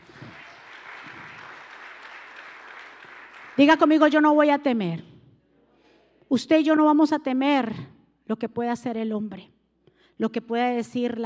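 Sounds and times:
applause: 0.0 - 4.1
speech: 3.6 - 5.1, 6.3 - 9.5, 10.2 - 11.2.

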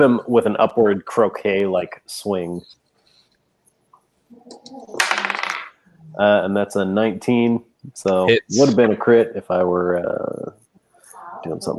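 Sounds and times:
speech: 0.0 - 2.8, 4.4 - 5.3, 6.1 - 10.6, 11.4 - 11.7
dice being rolled: 5.0 - 5.8.

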